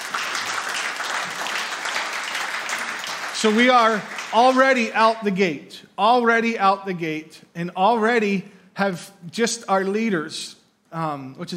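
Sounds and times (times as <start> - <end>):
audience clapping: 0.0 - 5.2
speech: 3.4 - 11.5.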